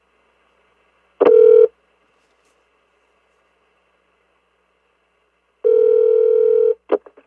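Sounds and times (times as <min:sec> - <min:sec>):
cell phone inline touch tone dialing: 0:01.2 - 0:01.7, 0:05.7 - 0:06.8.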